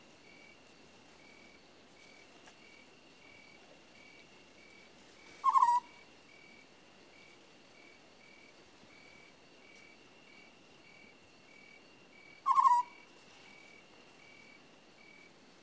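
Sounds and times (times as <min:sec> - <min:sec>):
owl screeching: 0:05.4 - 0:06.0, 0:12.4 - 0:13.0.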